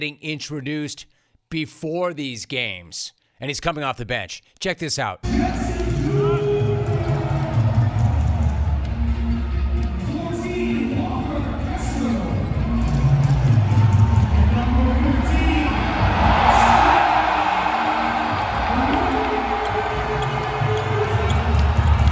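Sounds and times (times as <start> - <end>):
speech: 0.0 - 6.2
basketball arena crowd cheering: 5.3 - 22.0.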